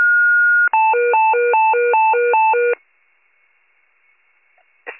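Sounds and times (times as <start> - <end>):
fire pager alert: 0.2 - 2.8.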